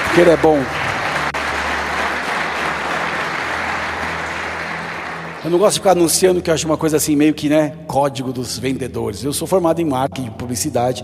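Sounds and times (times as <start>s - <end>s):
audience applause: 0.0s - 6.2s
speech: 0.2s - 0.8s, 5.4s - 11.0s.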